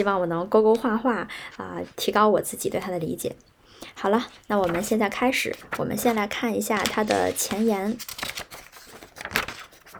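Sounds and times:
speech: 0.0 - 8.5
pages of a book turning: 4.3 - 9.9.

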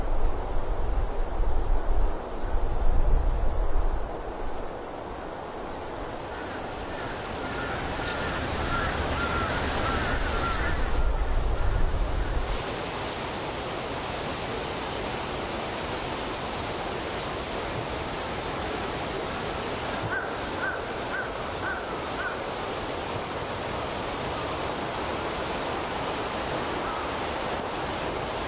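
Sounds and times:
wind moving through a forest: 0.0 - 28.4
faint bird chirps: 6.3 - 12.4.

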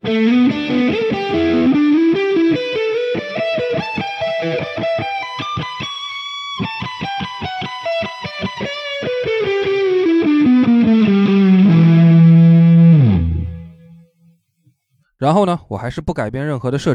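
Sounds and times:
distorted guitar through amp with reverb in effects loop: 0.0 - 14.1
speech: 15.2 - 16.9.

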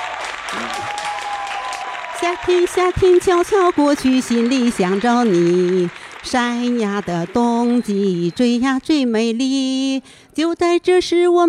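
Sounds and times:
audience applause: 0.0 - 8.3
speech: 2.2 - 11.4.

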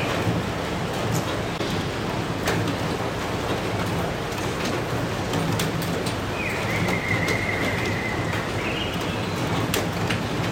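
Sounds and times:
late-night rain: 0.0 - 10.5
thin whistling bird call: 6.4 - 8.9.

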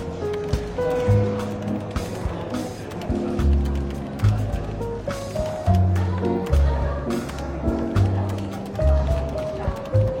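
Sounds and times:
relaxed jazz with walking bass and clear melody notes: 0.0 - 10.1
soft murmur of chatter in a London bookshop café: 0.0 - 10.1.

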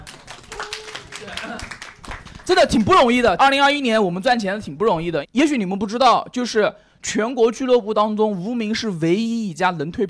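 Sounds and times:
crowd clapping: 0.0 - 2.7
speech: 2.5 - 10.0.

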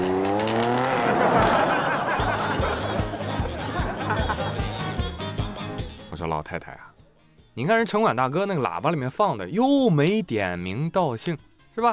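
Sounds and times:
sports car engine revving and driving off: 0.0 - 1.8
laughter: 1.0 - 5.1
speech: 6.4 - 7.0, 7.6 - 11.9.

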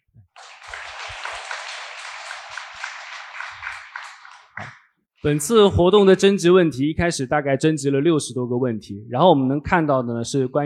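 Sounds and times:
audience applause: 0.4 - 4.8
speech: 4.6 - 10.6.

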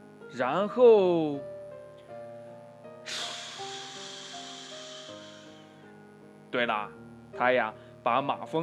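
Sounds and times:
steady tonal music: 0.0 - 8.6
speech: 0.3 - 1.5, 6.5 - 8.6
elephant blowing a strong gust: 3.1 - 5.8.

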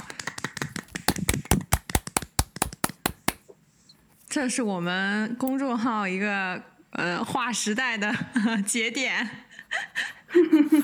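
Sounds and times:
hand clapping: 0.0 - 3.4
speech: 4.4 - 9.4.

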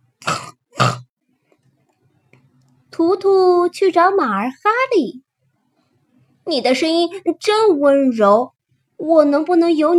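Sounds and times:
voice imitating pig grunts: 0.2 - 1.1
speech: 3.0 - 5.2, 6.5 - 9.9.

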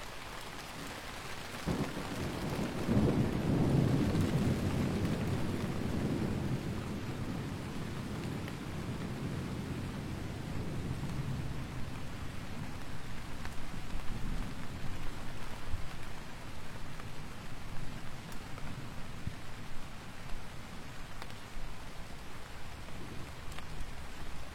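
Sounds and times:
typhoon rain: 0.0 - 24.5
deep thunder roll in a typhoon thunderstorm: 1.7 - 12.9.

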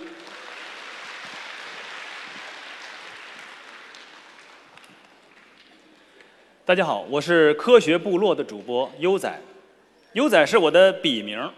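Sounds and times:
audience applause: 0.0 - 6.0
speech: 6.7 - 9.5, 10.1 - 11.5.

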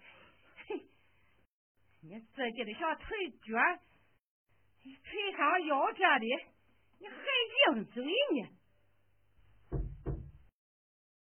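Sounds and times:
speech: 2.1 - 3.9, 4.8 - 8.6
knocking on a door: 9.7 - 10.5.

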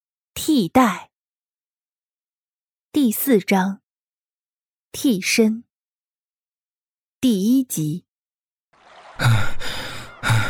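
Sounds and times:
speech: 0.5 - 1.1, 2.9 - 3.8, 4.9 - 5.7, 7.2 - 8.1, 9.2 - 9.7
laughter: 8.8 - 10.4
heavy panting breaths: 9.2 - 10.4.

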